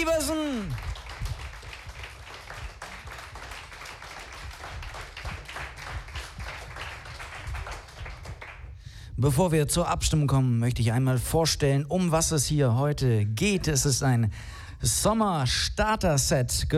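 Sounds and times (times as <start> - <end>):
audience applause: 0.0 - 8.7
speech: 9.2 - 16.7.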